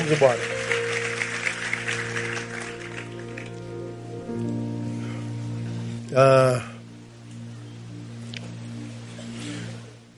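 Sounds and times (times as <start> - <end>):
audience clapping: 0.0 - 3.8
steady sustained keyboard chords: 0.0 - 10.1
speech: 0.1 - 0.6, 6.1 - 6.7.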